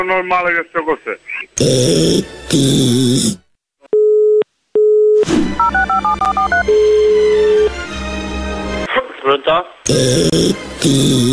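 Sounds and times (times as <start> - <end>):
speech: 0.1 - 3.4, 9.3 - 11.3
telephone dialing tones: 3.9 - 7.7.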